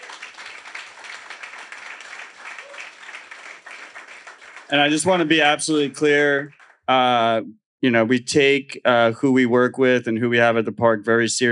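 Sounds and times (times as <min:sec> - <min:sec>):
audience applause: 0:00.0 - 0:06.8
speech: 0:04.7 - 0:11.4.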